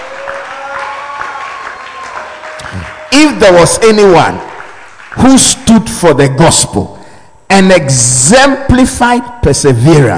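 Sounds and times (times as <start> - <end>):
crowd clapping and cheering: 0.0 - 5.7
speech: 3.1 - 4.5, 5.2 - 10.1.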